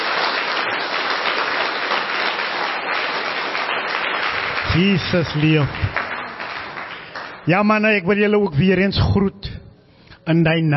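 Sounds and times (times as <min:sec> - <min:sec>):
audience applause: 0:00.0 - 0:07.6
speech: 0:04.8 - 0:06.0, 0:07.4 - 0:09.5, 0:10.3 - 0:10.7.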